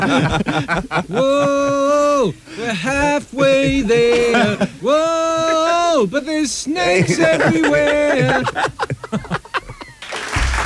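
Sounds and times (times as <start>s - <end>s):
laughter: 0.0s - 6.1s, 6.8s - 10.6s
speech: 0.0s - 9.3s
applause: 9.9s - 10.6s.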